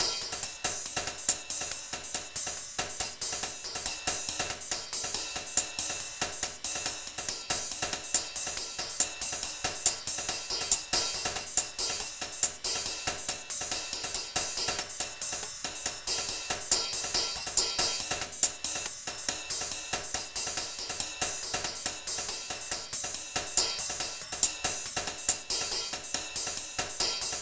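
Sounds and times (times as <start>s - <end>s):
cymbals: 0.0s - 27.4s
hi-hats: 0.0s - 27.4s.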